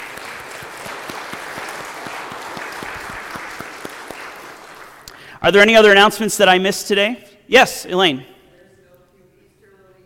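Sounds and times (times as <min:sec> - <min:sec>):
applause welcoming guests in Hoyleton: 0:00.0 - 0:05.3
speech: 0:05.4 - 0:08.3.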